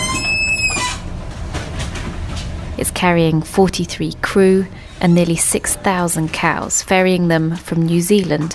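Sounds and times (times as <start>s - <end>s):
large ship creaking and groaning in a typhoon: 0.0s - 8.5s
speech: 2.8s - 8.5s.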